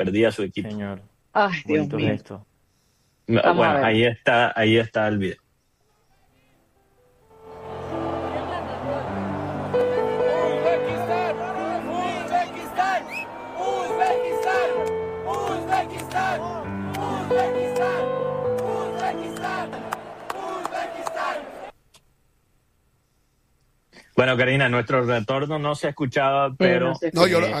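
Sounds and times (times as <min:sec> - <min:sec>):
speech: 0:00.0 - 0:02.5, 0:03.3 - 0:05.4, 0:24.2 - 0:27.5
football fans chanting and cheering: 0:07.4 - 0:21.7.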